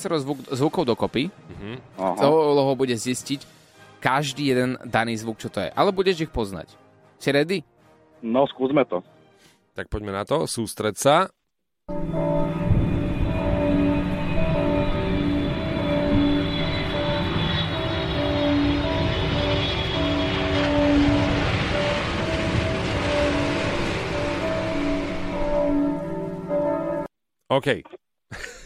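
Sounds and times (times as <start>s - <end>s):
speech: 0.0s - 9.1s, 9.8s - 12.3s, 27.5s - 28.6s
church bells ringing: 11.9s - 27.1s.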